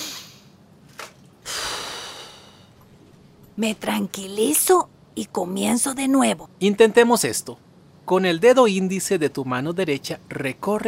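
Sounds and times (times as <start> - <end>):
deep calming breath during a relaxation exercise: 1.4 - 2.8
speech: 3.6 - 10.8.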